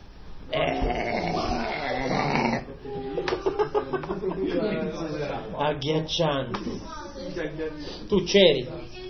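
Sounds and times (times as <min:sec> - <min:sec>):
loud burp: 0:00.5 - 0:02.7
laughter: 0:02.6 - 0:05.4
speech: 0:05.7 - 0:08.9.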